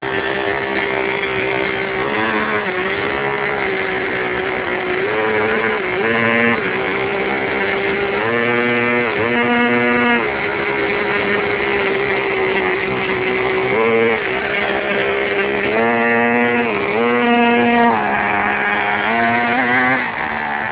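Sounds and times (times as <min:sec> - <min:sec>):
radio-controlled car: 0:00.0 - 0:20.7.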